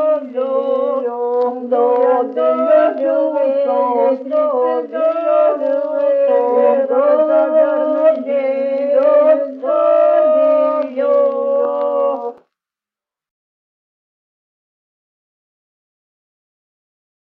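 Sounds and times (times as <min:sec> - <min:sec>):
Lithuanian sutartines polyphonic singing: 0:00.0 - 0:12.5.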